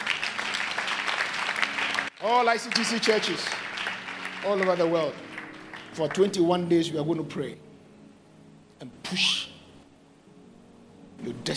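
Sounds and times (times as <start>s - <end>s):
crowd clapping: 0.0s - 6.6s
speech: 2.2s - 3.7s, 4.4s - 5.3s, 6.0s - 7.6s, 8.8s - 9.5s.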